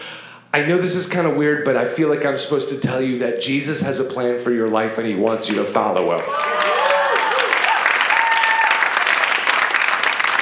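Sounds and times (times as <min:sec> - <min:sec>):
speech: 0:00.5 - 0:06.6
voices and cheers: 0:06.2 - 0:09.3
audience applause: 0:06.2 - 0:10.3.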